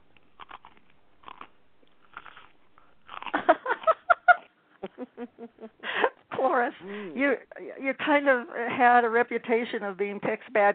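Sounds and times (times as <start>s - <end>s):
person biting and chewing crunchy food: 0.0s - 4.5s
laughter: 3.4s - 6.1s
speech: 6.7s - 10.7s.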